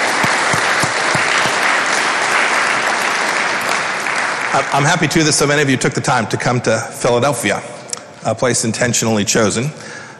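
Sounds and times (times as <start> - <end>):
audience applause: 0.0 - 5.2
speech: 4.5 - 10.0.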